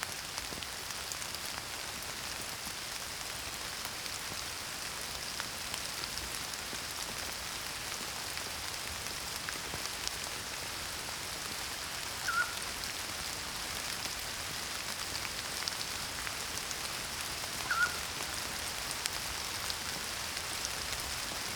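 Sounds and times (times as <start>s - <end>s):
rain: 0.0s - 21.5s
morning songbirds singing: 12.2s - 12.6s, 17.6s - 18.0s
pygmy owl calling: 12.2s - 12.7s, 17.6s - 18.1s.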